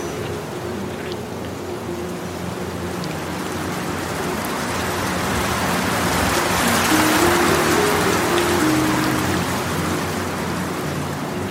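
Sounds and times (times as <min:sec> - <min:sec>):
ocean waves: 0:00.0 - 0:11.4
rain on dirt: 0:02.8 - 0:11.4.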